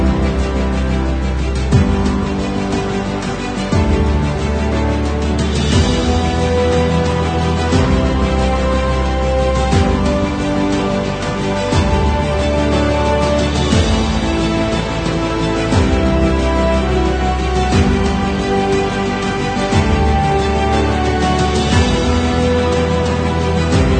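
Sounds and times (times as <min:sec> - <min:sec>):
orchestra playing epic music: 0:00.0 - 0:23.9.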